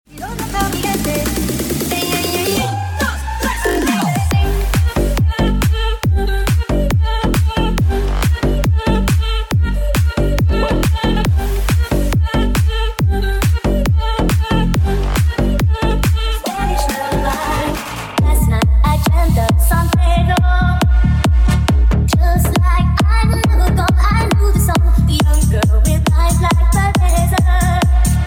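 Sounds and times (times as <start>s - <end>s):
children's dance music at 137 bpm: 0.1s - 28.2s.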